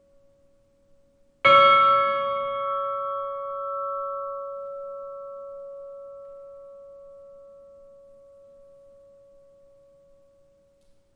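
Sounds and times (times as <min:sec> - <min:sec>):
Miðgarðar church bells tolling for a funeral: 0:01.5 - 0:09.2.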